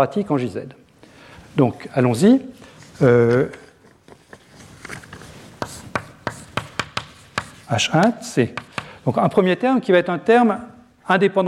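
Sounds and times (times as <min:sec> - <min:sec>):
speech: 0:00.0 - 0:00.8, 0:01.6 - 0:03.6, 0:07.7 - 0:11.4
writing terms on a board: 0:05.1 - 0:09.0.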